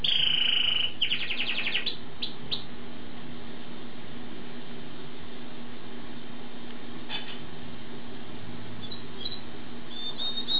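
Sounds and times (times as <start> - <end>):
songbird singing: 0.0 - 2.7, 8.8 - 10.5.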